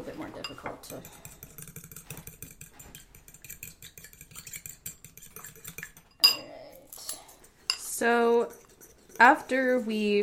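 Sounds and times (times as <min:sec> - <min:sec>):
mixing batter ingredients in a bowl: 0:00.0 - 0:10.2
speech: 0:00.1 - 0:01.3, 0:08.0 - 0:08.6, 0:09.2 - 0:10.2.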